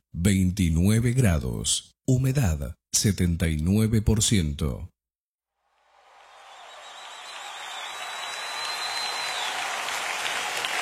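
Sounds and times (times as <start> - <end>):
speech: 0.2 - 4.9
audience applause: 5.9 - 10.8.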